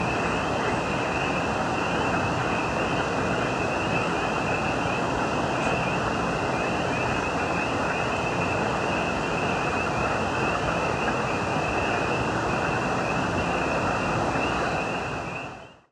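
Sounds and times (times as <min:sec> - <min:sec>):
country night ambience and weather: 0:00.0 - 0:15.8.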